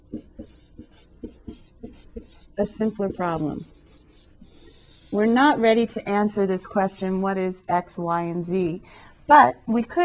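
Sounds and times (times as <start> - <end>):
writing strokes of someone writing a math equation: 0.0 - 6.5
speech: 2.6 - 3.7, 5.2 - 10.0.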